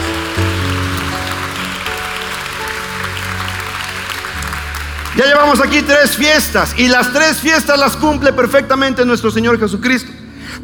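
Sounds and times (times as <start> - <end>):
audience applause: 0.0 - 7.4
speech: 5.2 - 10.2.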